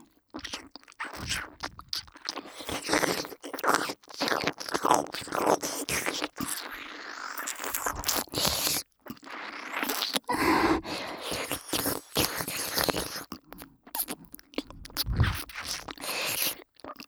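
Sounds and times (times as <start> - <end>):
slow deep ear licking in the left ear: 0.4 - 17.0.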